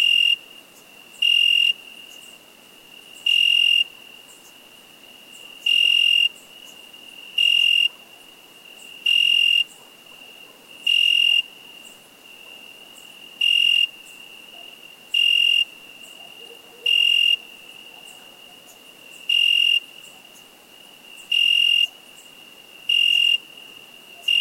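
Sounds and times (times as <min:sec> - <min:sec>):
cricket chirping in short bright high-pitched bursts: 0:00.0 - 0:24.4.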